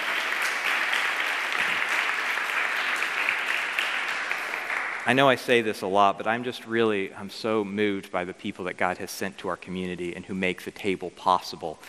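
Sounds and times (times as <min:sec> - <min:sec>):
audience applauding: 0:00.0 - 0:05.4
speech: 0:05.0 - 0:11.8.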